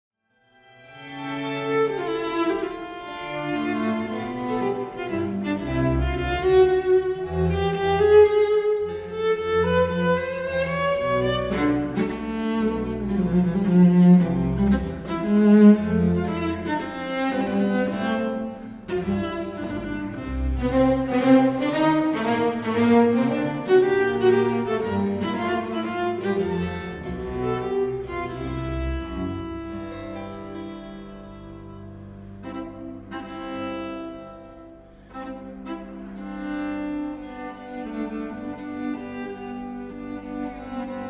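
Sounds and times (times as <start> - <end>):
cello concerto in A minor excerpt: 0.3 - 41.0.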